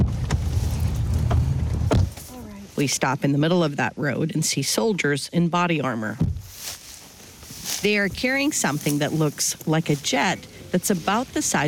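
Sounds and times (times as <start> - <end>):
vehicle driving along a dirt road through a field in eastern Ukraine: 0.0 - 3.9, 6.3 - 11.6
speech: 2.8 - 6.4, 7.8 - 11.6.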